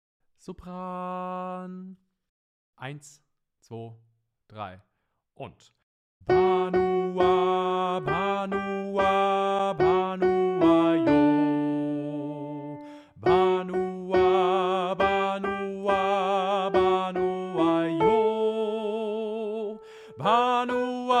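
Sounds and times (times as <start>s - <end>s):
solo soprano singing: 6.3s - 21.1s.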